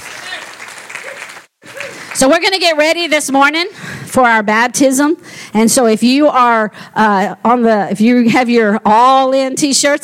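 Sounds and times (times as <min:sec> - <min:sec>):
audience clapping: 0:00.0 - 0:02.6
speech: 0:02.2 - 0:10.0.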